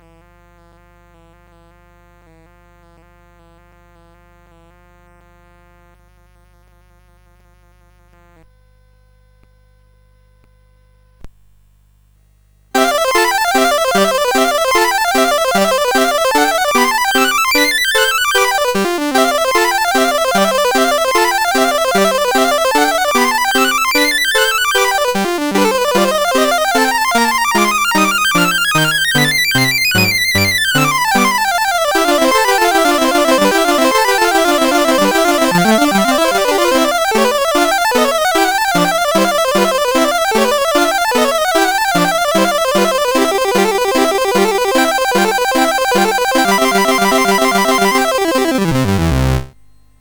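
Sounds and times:
instrumental study in C major: 12.8s - 49.9s.

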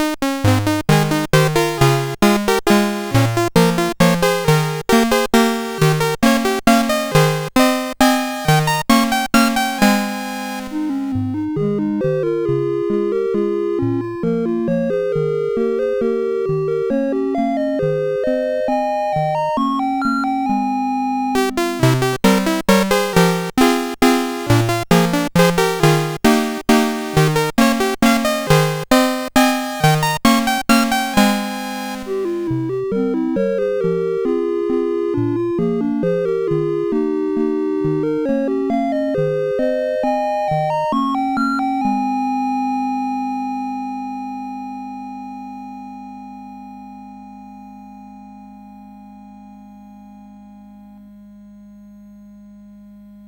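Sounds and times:
SID chiptune music on a CSG8580R5 chip: 0.0s - 44.4s.

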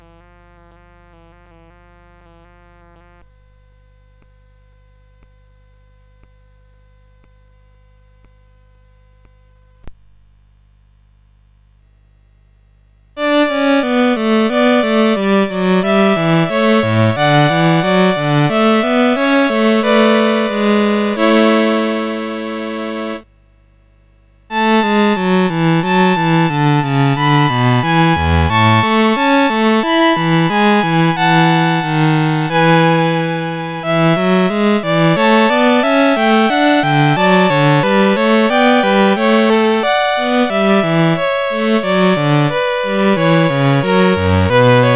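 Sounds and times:
trio sonata on CSG8580R5 chip: 13.2s - 23.2s, 24.5s - 44.9s.

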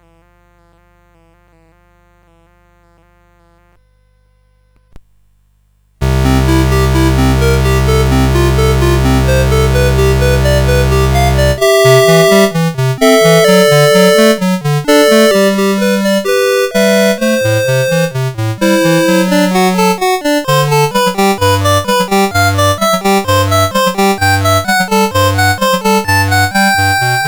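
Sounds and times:
prelude in C major: 6.0s - 27.2s.

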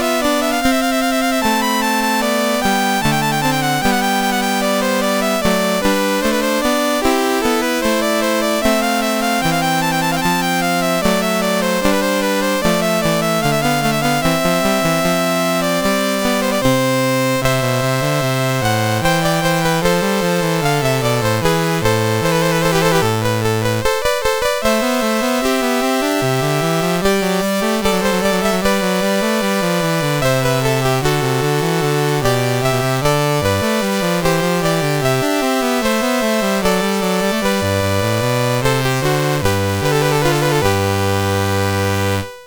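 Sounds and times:
chiptune piece on MOS6581R3 sound chip: 0.0s - 42.4s.

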